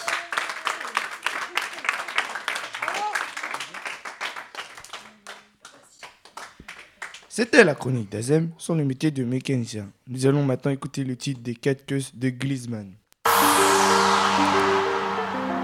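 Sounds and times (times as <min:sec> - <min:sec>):
audience applause: 0:00.0 - 0:07.4, 0:13.3 - 0:15.6
speech: 0:07.4 - 0:13.0.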